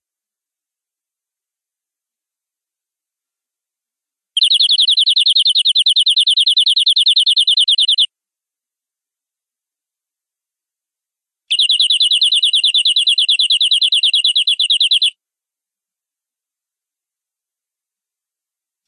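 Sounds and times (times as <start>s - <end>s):
canary rolling trill song: 4.4s - 8.1s, 11.5s - 15.1s.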